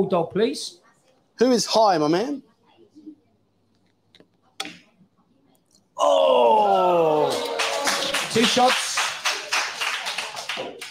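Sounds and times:
speech: 0.0s - 0.8s, 1.4s - 2.5s, 6.0s - 7.6s, 8.4s - 8.9s
crowd clapping in rhythm: 7.1s - 10.8s.

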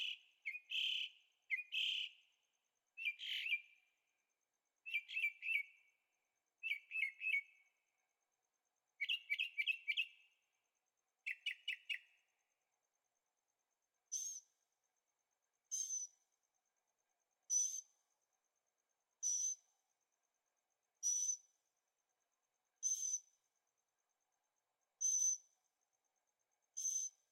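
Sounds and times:
bird chirping song: 0.0s - 2.3s, 3.0s - 4.0s, 4.8s - 6.0s, 6.6s - 7.9s, 9.0s - 10.4s, 11.2s - 12.4s, 14.1s - 14.6s, 15.7s - 16.2s, 17.5s - 18.0s, 19.2s - 19.7s, 21.0s - 21.5s, 22.8s - 23.4s, 25.0s - 25.6s, 26.8s - 27.3s.

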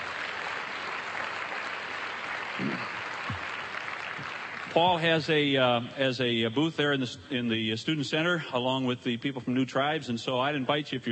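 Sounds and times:
audience at a campus gathering applauding a visiting representative: 0.0s - 5.8s
speech: 4.8s - 11.0s.

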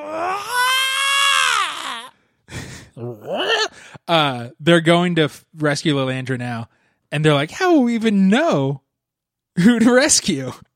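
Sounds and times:
voice imitating a loud scream: 0.0s - 2.2s, 3.0s - 3.7s
speech: 4.1s - 8.8s, 9.6s - 10.7s.

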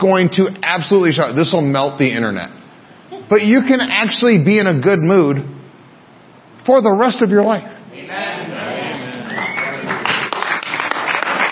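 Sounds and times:
speech: 0.0s - 2.6s, 3.3s - 5.5s, 6.6s - 8.5s
murmur of voices: 7.8s - 10.2s
audience clapping: 8.9s - 11.5s.

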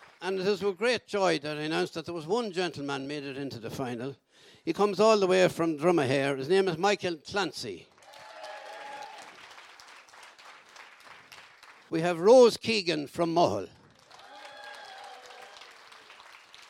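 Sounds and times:
audience applause for finalists: 0.0s - 0.8s, 7.9s - 12.0s, 13.6s - 16.6s
man speaking loudly over a microphone: 0.2s - 7.9s, 11.9s - 13.8s
speech: 0.2s - 7.9s, 11.9s - 13.8s.

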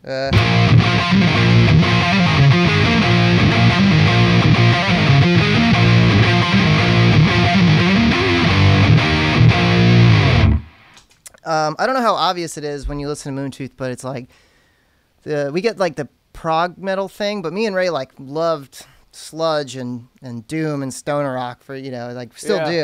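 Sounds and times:
speech: 0.0s - 2.4s, 11.7s - 14.5s, 15.2s - 22.8s
distorted electric guitar riff on neck pickup: 0.2s - 11.0s.

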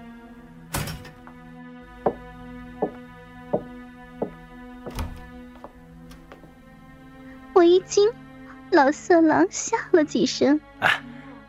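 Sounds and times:
door being opened: 0.7s - 1.3s, 3.6s - 6.4s
speech: 7.8s - 11.1s.

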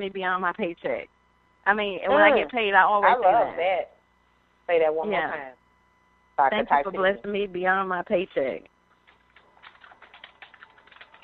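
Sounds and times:
speech: 0.0s - 4.0s, 4.7s - 5.6s, 6.4s - 8.7s
faint typing on a computer keyboard: 9.0s - 11.2s.

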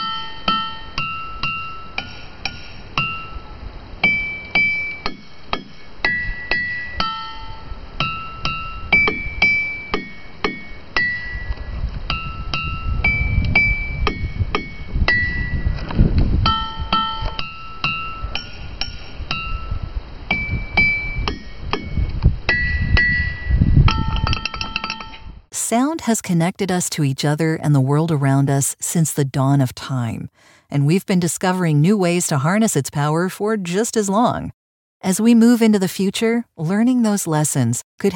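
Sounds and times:
six singing stones struck to play a melody: 0.0s - 15.8s, 16.4s - 25.3s
speech: 25.7s - 38.1s.

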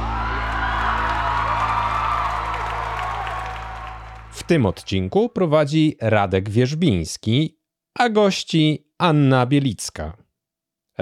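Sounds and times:
applause: 0.0s - 4.9s
cheering: 0.0s - 5.0s
speech: 4.4s - 10.2s.

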